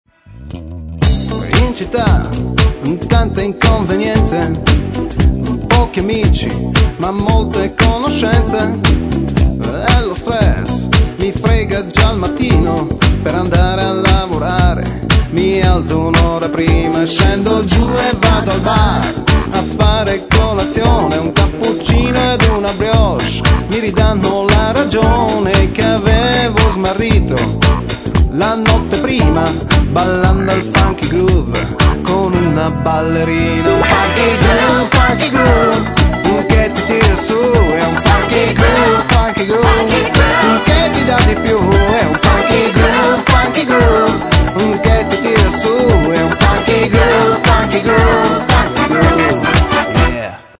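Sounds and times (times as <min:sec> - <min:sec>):
funk music: 0:00.3 - 0:50.5.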